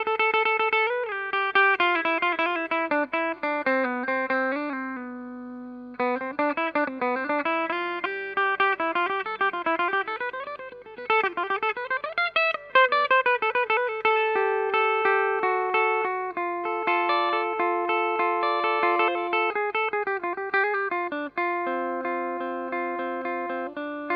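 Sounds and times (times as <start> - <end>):
Ibanez Artcore guitar: 0.0 - 24.1.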